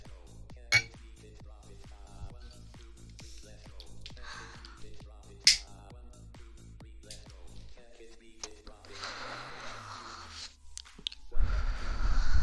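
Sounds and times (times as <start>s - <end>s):
rhythmic music: 0.0s - 11.3s
glasses clinking in a toast: 0.7s - 1.0s, 5.5s - 5.7s.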